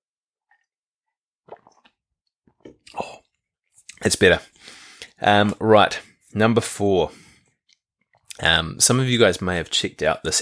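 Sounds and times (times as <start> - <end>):
sipping water: 1.4 - 5.2
speech: 4.1 - 7.2, 8.4 - 10.4.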